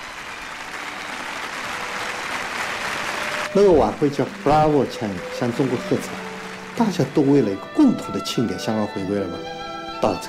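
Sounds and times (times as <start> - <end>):
warm concert hall applause: 0.0 - 10.2
speech: 3.6 - 10.2.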